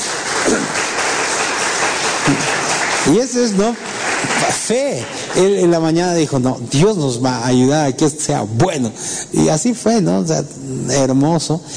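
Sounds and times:
applause: 0.0s - 6.3s
speech: 3.1s - 11.7s.

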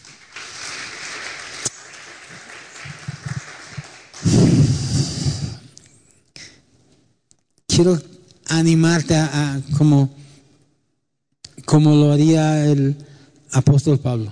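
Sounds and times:
audience applauding loudly: 0.0s - 5.4s
speech: 7.8s - 10.2s, 11.7s - 14.3s.

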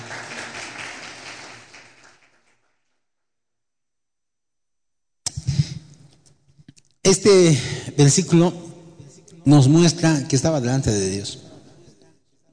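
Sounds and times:
audience applause: 0.0s - 2.6s
speech: 7.1s - 8.7s, 9.4s - 11.5s.

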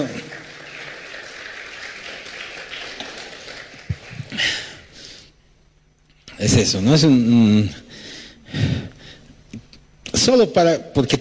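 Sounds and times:
audience applause: 0.0s - 5.0s
speech: 6.4s - 7.9s, 10.3s - 11.1s.

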